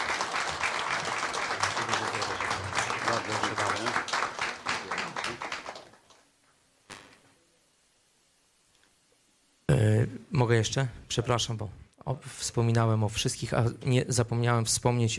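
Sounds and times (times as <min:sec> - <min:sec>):
audience applause: 0:00.0 - 0:06.2
speech: 0:10.1 - 0:15.1.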